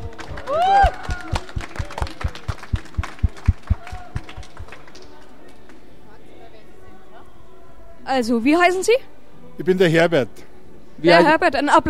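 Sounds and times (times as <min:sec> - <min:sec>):
audience applause: 0:00.0 - 0:05.3
speech: 0:08.1 - 0:11.8.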